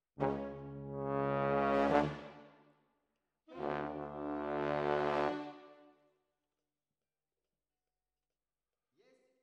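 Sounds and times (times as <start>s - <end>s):
trombone: 0.0s - 2.5s, 3.6s - 5.8s.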